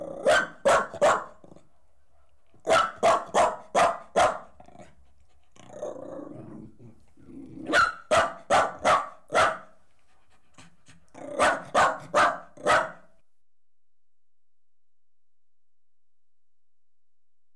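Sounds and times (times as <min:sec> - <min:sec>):
dog growling: 0:00.0 - 0:00.3, 0:04.6 - 0:07.8, 0:11.0 - 0:11.7
dog barking: 0:00.2 - 0:01.4, 0:02.6 - 0:04.6, 0:07.6 - 0:09.8, 0:11.2 - 0:13.1.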